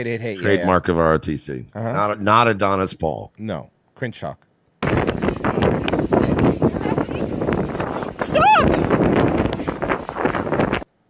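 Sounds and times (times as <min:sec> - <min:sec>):
speech: 0:00.0 - 0:06.6, 0:08.2 - 0:08.9
wind buffeting a microphone in a played video recording: 0:04.8 - 0:10.9.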